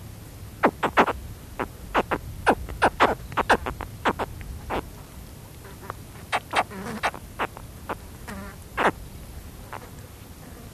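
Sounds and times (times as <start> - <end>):
spectacled caiman chirping calls: 0.6 - 4.9, 5.6 - 9.0.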